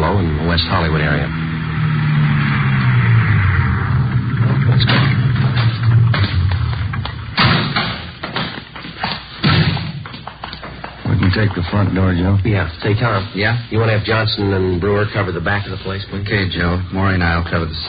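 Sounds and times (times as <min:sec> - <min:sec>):
car engine humming: 0:00.0 - 0:17.8
speech: 0:00.6 - 0:01.5, 0:04.8 - 0:05.2, 0:11.4 - 0:17.8
thumps and thuds: 0:04.8 - 0:11.4.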